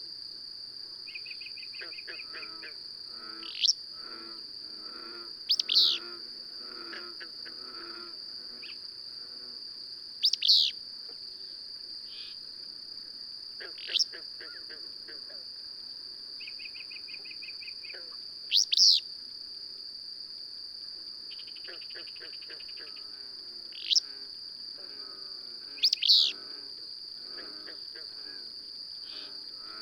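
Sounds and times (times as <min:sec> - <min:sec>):
high-pitched insect buzz: 0:01.1 - 0:12.4, 0:16.4 - 0:19.1, 0:21.3 - 0:29.8
bird chirping: 0:10.2 - 0:10.7, 0:18.5 - 0:19.0, 0:25.8 - 0:26.4.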